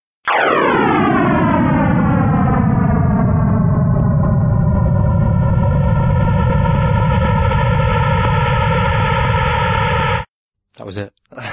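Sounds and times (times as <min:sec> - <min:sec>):
sonification of the early universe's first million years: 0:00.2 - 0:10.3
speech: 0:10.9 - 0:11.1.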